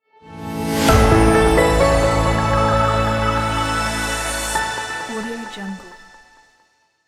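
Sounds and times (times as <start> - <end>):
inspiring music logo: 0.2 - 5.2.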